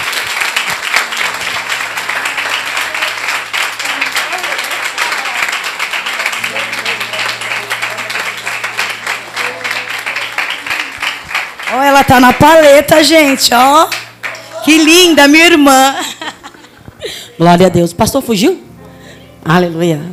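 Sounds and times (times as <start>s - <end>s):
audience applauding: 0.0s - 15.4s
speech: 12.1s - 14.0s, 14.6s - 16.1s, 17.4s - 18.6s, 19.4s - 20.1s
laughter: 15.8s - 17.3s.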